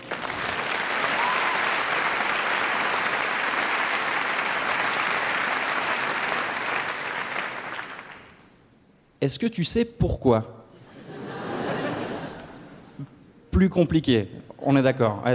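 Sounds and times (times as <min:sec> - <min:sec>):
audience applause: 0:00.0 - 0:08.5
speech: 0:09.2 - 0:10.6, 0:13.6 - 0:15.3
laughter: 0:10.8 - 0:13.2.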